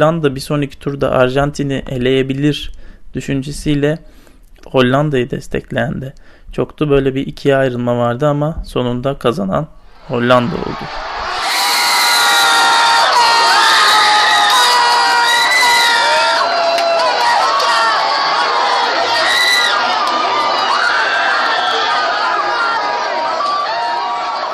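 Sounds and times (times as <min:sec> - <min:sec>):
speech: 0:00.0 - 0:11.1
large street crowd on Azpilicueta street cheering after Netherlands football win: 0:09.9 - 0:24.5
dense steady roar of excited chatter: 0:10.0 - 0:24.5
many high voices yelling and whooping: 0:10.0 - 0:24.5.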